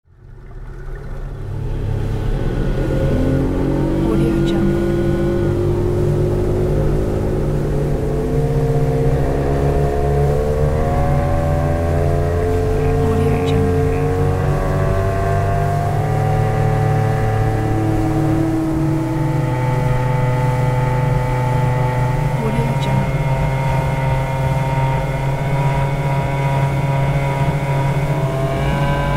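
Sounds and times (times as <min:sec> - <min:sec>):
motor boat: 0:00.0 - 0:29.1.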